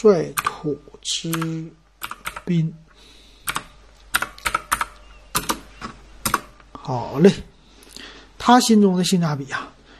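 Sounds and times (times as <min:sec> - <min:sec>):
speech: 0:00.0 - 0:02.8, 0:06.9 - 0:07.5, 0:08.4 - 0:09.7
keyboard typing: 0:00.3 - 0:00.6, 0:01.3 - 0:02.5, 0:03.4 - 0:06.6.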